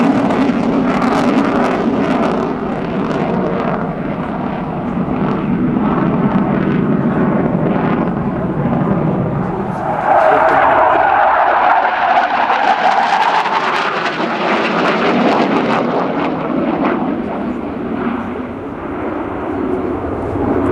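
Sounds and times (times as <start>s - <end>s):
Panavia Tornado jet aircraft: 0.0s - 20.7s.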